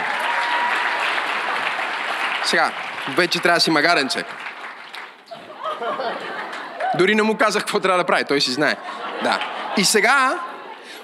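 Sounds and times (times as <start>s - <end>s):
crowd applause: 0.0s - 7.0s, 8.9s - 10.4s
speech: 2.4s - 4.5s, 6.9s - 10.5s
laughter: 5.3s - 7.1s, 8.5s - 11.0s.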